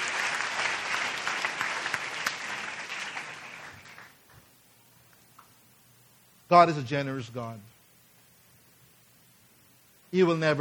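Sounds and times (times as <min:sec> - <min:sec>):
audience applause: 0:00.0 - 0:04.2
speech: 0:06.5 - 0:07.7, 0:10.1 - 0:10.6.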